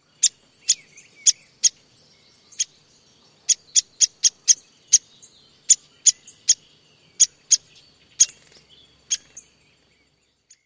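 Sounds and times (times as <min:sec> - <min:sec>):
tweek calls: 0:00.0 - 0:10.6.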